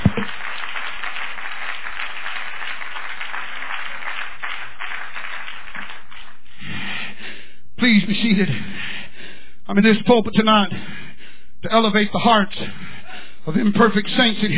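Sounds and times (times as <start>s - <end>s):
audience clapping: 0.0s - 7.0s
speech: 7.9s - 8.8s, 9.7s - 11.0s, 11.6s - 12.9s, 13.5s - 14.5s.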